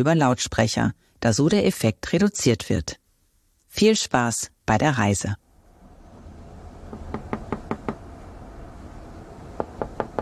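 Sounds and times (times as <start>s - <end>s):
speech: 0.0s - 3.0s, 3.7s - 5.4s
knocking on a door: 6.9s - 8.0s, 9.6s - 10.1s.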